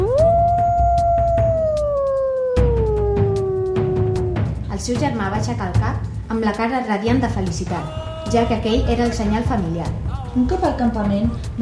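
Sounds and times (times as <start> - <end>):
long howl: 0.0 - 4.5
speech: 4.8 - 11.6.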